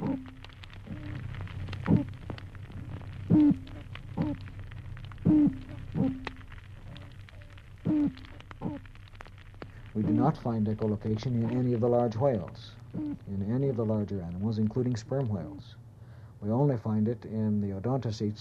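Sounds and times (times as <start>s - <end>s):
toadfish boat whistle calls: 0.0s - 2.2s, 3.3s - 4.5s, 5.2s - 8.9s, 12.9s - 13.4s
speech: 10.2s - 15.8s, 16.4s - 18.3s.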